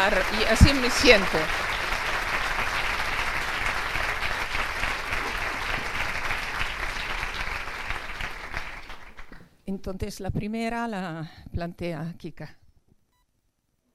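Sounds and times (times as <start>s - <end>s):
speech: 0.0s - 1.8s, 9.8s - 12.6s
audience applause: 0.0s - 9.4s.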